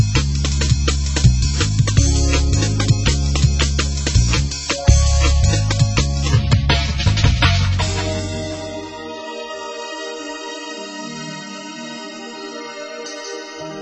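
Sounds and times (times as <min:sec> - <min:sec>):
drum and bass mix: 0:00.0 - 0:09.0.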